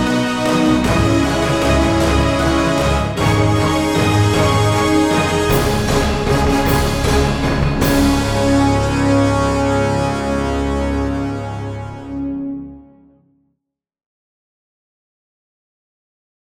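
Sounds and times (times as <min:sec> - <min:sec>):
battle orchestral brass ensemble: 0:00.0 - 0:13.2.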